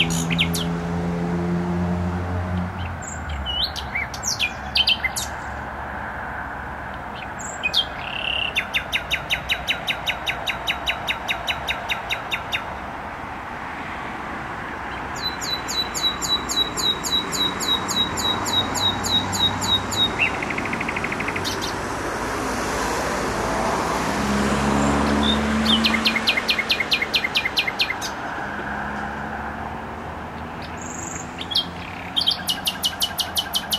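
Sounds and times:
nightingale song: 0.0 - 0.8, 2.8 - 5.6, 7.1 - 12.8, 14.9 - 21.8, 24.8 - 28.4, 30.4 - 33.7
traffic noise: 0.0 - 33.7.

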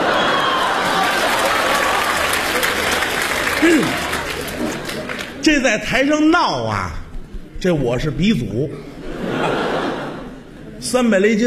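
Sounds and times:
laughter: 0.0 - 5.4, 8.8 - 10.8
audience applause for a performer at a comedy show in Beijing: 0.0 - 5.6
speech: 3.6 - 4.0, 5.6 - 7.0, 7.6 - 8.9, 10.8 - 11.4.

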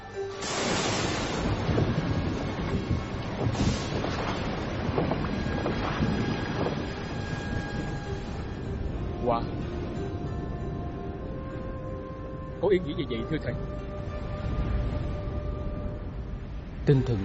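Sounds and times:
boat rumbling across open water through a waterway toward the East Sea: 0.0 - 17.2
steady dense rush of wind and water noise: 0.0 - 17.2
brief surges of water splashing: 0.4 - 8.7
speech: 12.7 - 14.0, 16.8 - 17.2.

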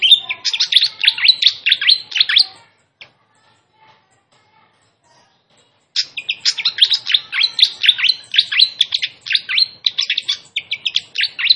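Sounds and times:
flycatcher giving sharp high notes: 0.0 - 2.6, 6.0 - 11.5.

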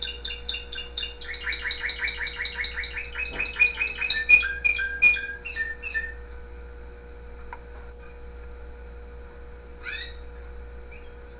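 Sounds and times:
canary singing: 0.0 - 6.2, 9.8 - 11.3
faint steady hum: 0.0 - 11.3.

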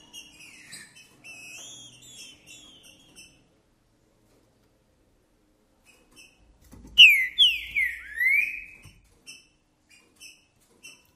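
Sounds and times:
green-winged saltator song: 0.1 - 3.4, 7.0 - 8.8.

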